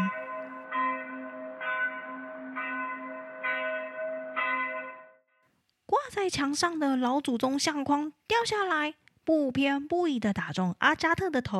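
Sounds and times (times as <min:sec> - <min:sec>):
church bell ringing: 0:00.0 - 0:05.3
speech: 0:05.9 - 0:11.5.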